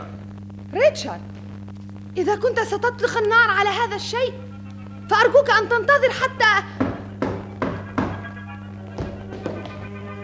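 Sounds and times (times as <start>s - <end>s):
speech: 0.7s - 1.4s, 2.2s - 4.5s, 5.1s - 6.8s
knocking on a front door: 6.8s - 8.3s.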